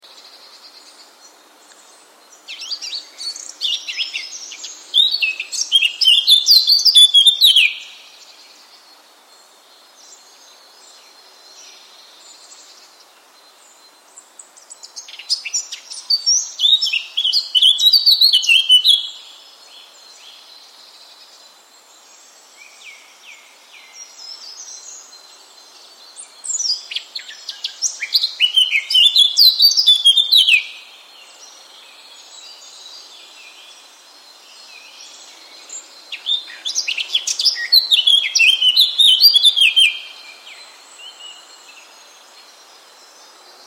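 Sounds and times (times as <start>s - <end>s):
Sylvia atricapilla singing: 2.5s - 8.0s, 15.0s - 19.2s, 26.5s - 30.8s, 35.7s - 41.2s.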